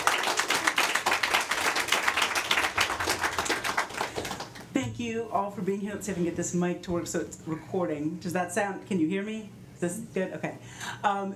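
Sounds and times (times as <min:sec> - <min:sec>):
audience applause: 0:00.0 - 0:04.6
speech: 0:05.0 - 0:11.3.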